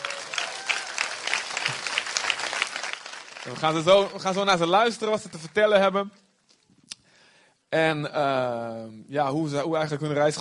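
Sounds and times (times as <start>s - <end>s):
audience applause: 0.0s - 5.6s
speech: 3.4s - 6.2s, 7.7s - 10.4s.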